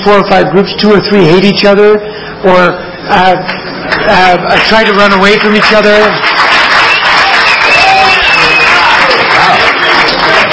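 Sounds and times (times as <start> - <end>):
speech: 0.0 - 6.4
audience applause: 3.9 - 10.5.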